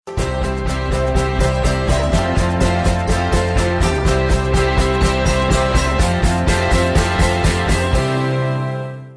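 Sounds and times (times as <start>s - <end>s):
theme music: 0.1s - 9.1s.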